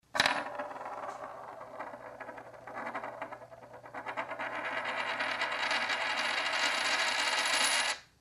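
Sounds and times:
coin spinning: 0:00.2 - 0:08.0.

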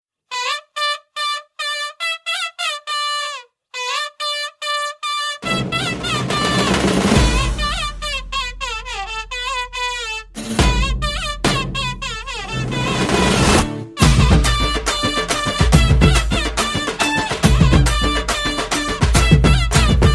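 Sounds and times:
instrumental music: 0:00.3 - 0:20.1.

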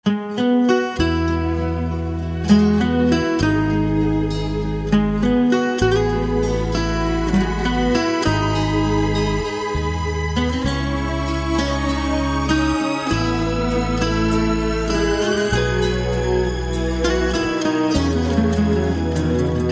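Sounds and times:
guitar: 0:00.0 - 0:19.7.

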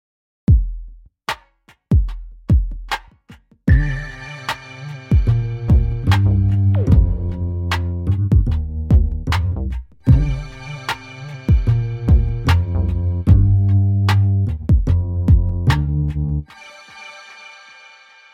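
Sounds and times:
downtempo electronic music: 0:03.7 - 0:18.3.

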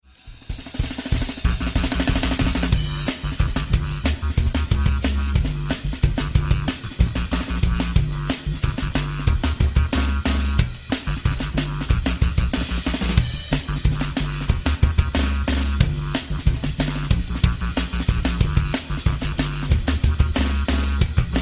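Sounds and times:
drum kit: 0:00.0 - 0:21.4.

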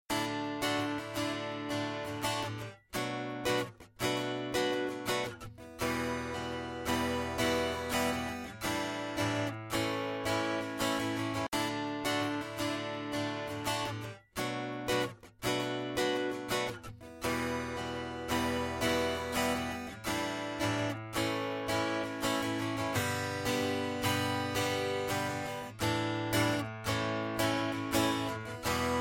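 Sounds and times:
digital guitar: 0:00.1 - 0:29.0.

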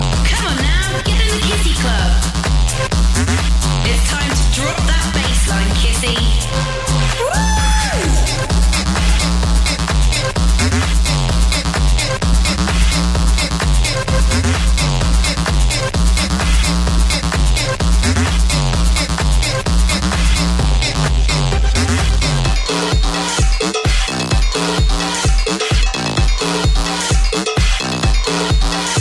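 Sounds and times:
hard bass music: 0:00.0 - 0:29.0.

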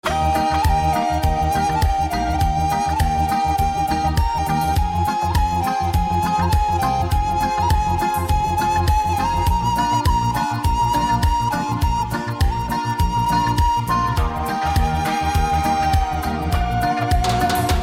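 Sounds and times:
ocarina melody: 0:00.0 - 0:17.8.

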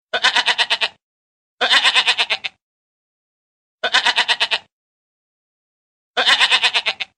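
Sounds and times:
goat bleating: 0:00.1 - 0:01.0, 0:01.6 - 0:02.6, 0:03.8 - 0:04.7, 0:06.2 - 0:07.1.

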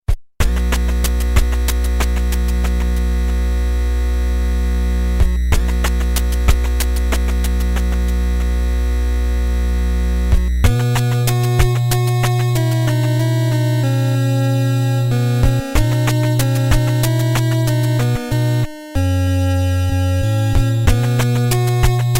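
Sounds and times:
8-bit music: 0:00.4 - 0:22.1.

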